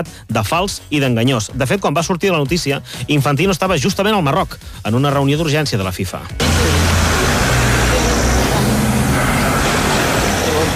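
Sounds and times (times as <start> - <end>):
speech: 0.0 - 6.8
car driving away: 6.4 - 10.7.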